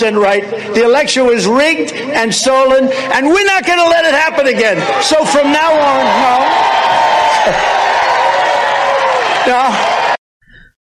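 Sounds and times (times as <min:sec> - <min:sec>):
speech: 0:00.0 - 0:07.9, 0:09.4 - 0:09.9
crowd screaming and cheering at a Trump speech: 0:04.7 - 0:10.2.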